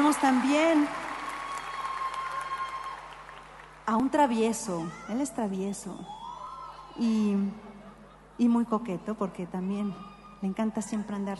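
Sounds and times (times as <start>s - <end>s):
speech: 0.0s - 1.0s, 3.9s - 6.2s, 7.0s - 7.7s, 8.4s - 11.3s
audience applause: 0.0s - 3.8s
faint constant humming tone: 0.0s - 11.3s.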